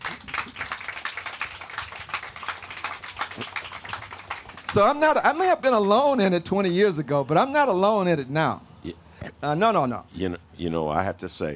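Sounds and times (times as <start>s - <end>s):
audience applause: 0.0s - 5.2s
speech: 4.7s - 11.5s.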